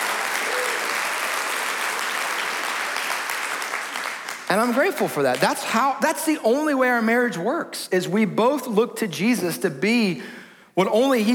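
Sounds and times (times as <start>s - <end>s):
audience cheering: 0.0s - 4.2s
audience applauding: 0.0s - 5.4s
speech: 4.5s - 11.3s.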